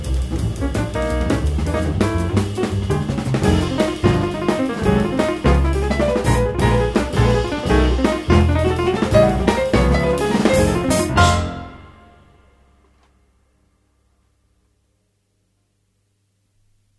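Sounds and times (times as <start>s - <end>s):
blues music: 0.0s - 12.4s.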